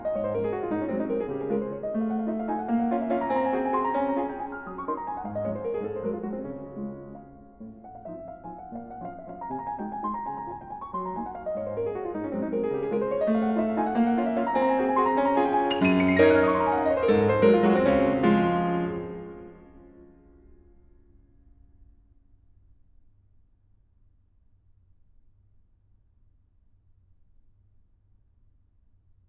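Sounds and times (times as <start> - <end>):
waltz in D flat: 0.0 - 20.2.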